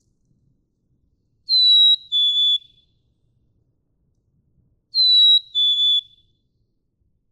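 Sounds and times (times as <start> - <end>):
black-capped chickadee two-note whistle: 1.5 - 2.7, 5.0 - 6.1.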